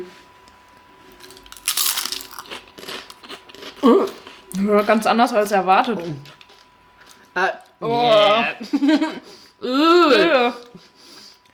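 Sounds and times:
biting into and chewing a green seaweed-like snack: 1.1 - 4.4
speech: 3.8 - 6.3, 7.4 - 10.9
laughter: 8.3 - 10.7.

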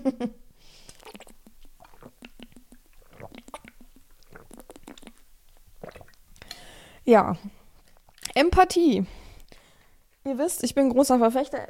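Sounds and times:
speech: 0.0 - 0.4, 7.1 - 7.6, 8.4 - 9.2, 10.3 - 11.6
person sipping a drink and swallowing: 0.8 - 8.4.

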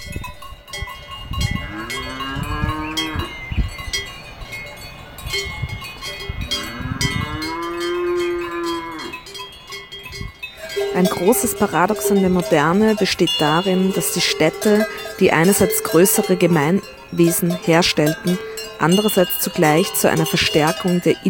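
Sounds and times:
cowbells clanging on grazing cows: 0.0 - 21.2
cows mooing: 1.5 - 3.4, 6.4 - 9.4, 10.6 - 21.2
speech: 11.2 - 21.2.

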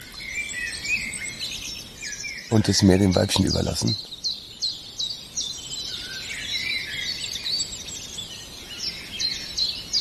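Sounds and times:
common chiffchaff singing: 0.0 - 9.9
speech: 2.5 - 4.2.

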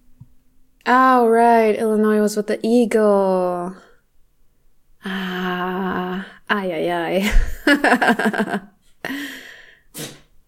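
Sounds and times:
speech: 0.9 - 3.9, 5.0 - 9.3
cat sneezing: 9.9 - 10.3.

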